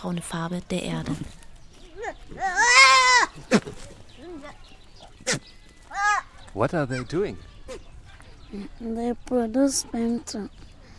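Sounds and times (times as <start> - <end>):
speech: 0.0 - 1.4, 2.0 - 7.8, 8.5 - 10.7
young goats bleating: 1.9 - 8.0.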